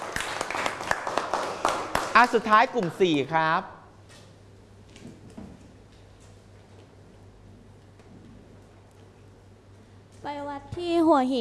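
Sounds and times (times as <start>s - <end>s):
classroom group applause: 0.0s - 3.0s
speech: 2.2s - 3.8s, 10.8s - 11.4s.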